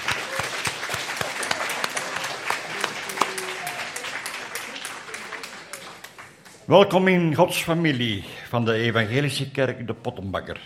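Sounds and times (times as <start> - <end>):
church crowd clapping for caterers: 0.0 - 7.1
speech: 6.7 - 10.6.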